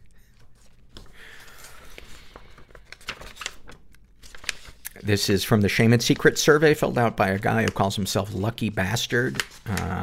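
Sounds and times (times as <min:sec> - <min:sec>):
paper rattling: 0:00.6 - 0:10.0
speech: 0:05.0 - 0:10.0.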